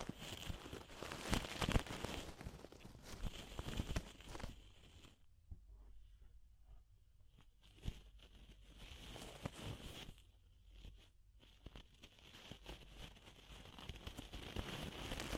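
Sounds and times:
scratchy rubbing: 0.0 - 5.3, 7.3 - 15.3
ear-cleaning crackly rustling and tapping: 0.0 - 5.7, 6.7 - 15.3.

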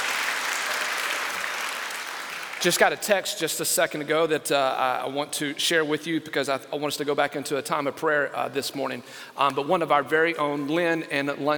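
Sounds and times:
group applauding: 0.0 - 3.0
speech: 2.6 - 11.5.

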